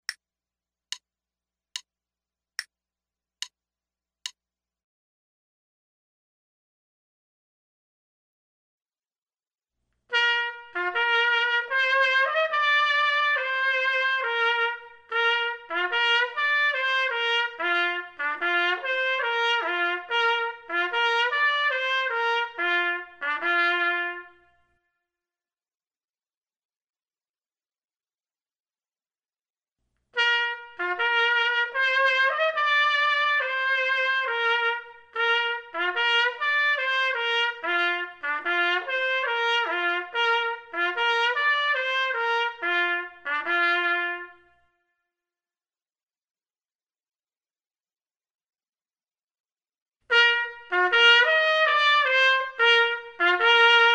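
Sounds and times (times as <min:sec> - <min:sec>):
trumpet: 0:10.1 - 0:24.9, 0:30.2 - 0:44.9, 0:50.1 - 0:53.9.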